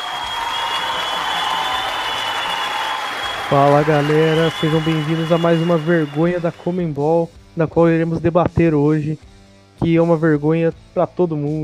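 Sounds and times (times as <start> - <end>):
applause: 0.0 - 6.7
speech: 3.5 - 11.6.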